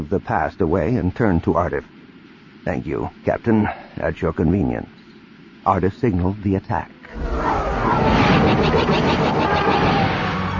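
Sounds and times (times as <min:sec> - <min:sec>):
speech: 0:00.0 - 0:02.0, 0:02.6 - 0:05.0, 0:05.6 - 0:07.2
Preybird-class starfighters in tight formation roaring past: 0:07.1 - 0:10.5
low-power blaster fire: 0:07.1 - 0:10.5.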